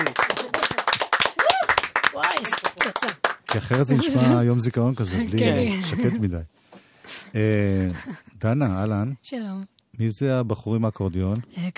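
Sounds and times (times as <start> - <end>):
musicians clapping hands in studio: 0.0 - 4.6
laughter: 3.6 - 6.3, 7.6 - 8.4
speech: 3.6 - 6.7, 7.3 - 11.7.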